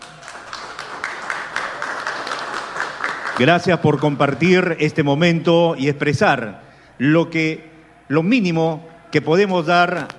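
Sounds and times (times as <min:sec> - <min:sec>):
loud applause: 0:00.0 - 0:04.4
speech: 0:03.4 - 0:10.1.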